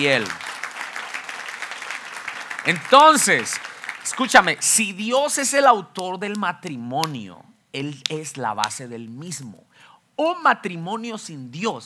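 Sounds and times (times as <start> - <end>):
speech: 0.0 - 0.4, 2.6 - 11.8
audience applauding: 0.0 - 4.8.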